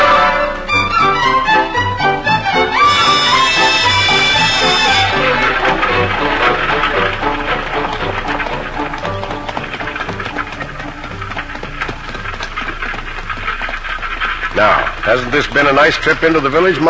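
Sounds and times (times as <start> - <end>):
horse-drawn carriage hooves clip-clopping: 0.0 - 16.8
speech: 15.1 - 16.8.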